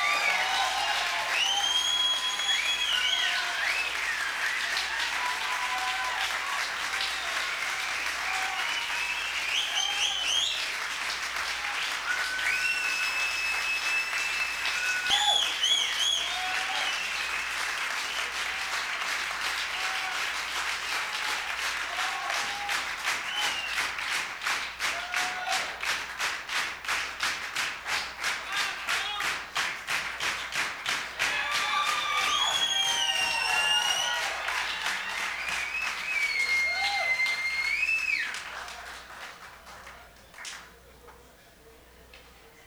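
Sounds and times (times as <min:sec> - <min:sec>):
crowd whoops and whistles: 0:00.0 - 0:19.0, 0:21.0 - 0:24.1, 0:31.2 - 0:38.7
audience applause after a concert: 0:00.0 - 0:40.9.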